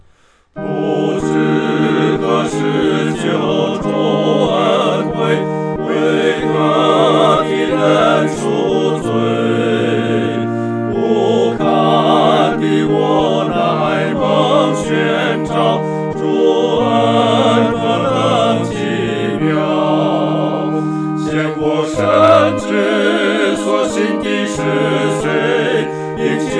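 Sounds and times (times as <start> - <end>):
four-part choir singing: 0.6 - 26.5.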